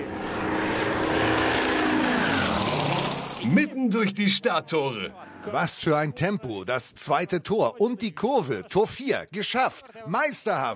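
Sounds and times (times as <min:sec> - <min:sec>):
drone propellers buzzing: 0:00.0 - 0:04.2
speech: 0:03.5 - 0:10.7.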